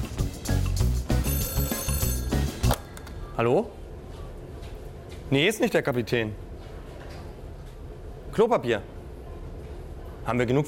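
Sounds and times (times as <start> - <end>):
telephone ringing: 1.2 - 3.3
speech: 3.4 - 3.8, 5.3 - 6.5, 8.4 - 8.9, 10.3 - 10.6.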